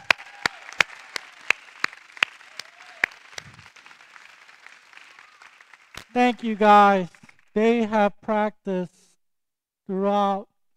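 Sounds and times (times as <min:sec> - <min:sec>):
audience applause: 0:00.0 - 0:07.6
speech: 0:06.1 - 0:09.0, 0:09.9 - 0:10.5.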